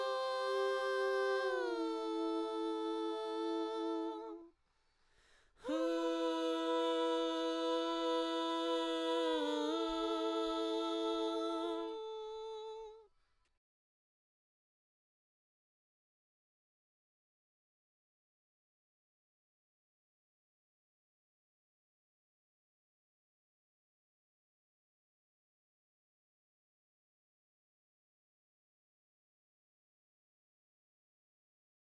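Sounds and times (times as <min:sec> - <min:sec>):
backing vocals: 0:00.0 - 0:04.5, 0:05.6 - 0:13.0.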